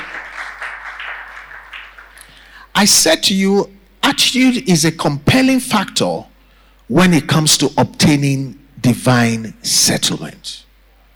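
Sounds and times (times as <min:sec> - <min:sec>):
audience applause: 0:00.0 - 0:02.3
speech: 0:02.8 - 0:06.3, 0:06.9 - 0:10.6.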